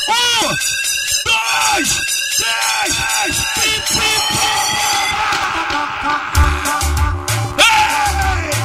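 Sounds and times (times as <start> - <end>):
speech: 0.1 - 4.9
live show crowd screaming and cheering: 1.6 - 8.5.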